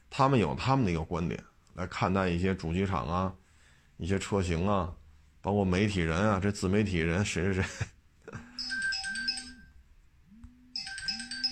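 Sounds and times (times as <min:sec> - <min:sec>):
speech: 0:00.2 - 0:03.4, 0:04.0 - 0:08.5
phone ringtone: 0:08.4 - 0:09.8, 0:10.6 - 0:11.5.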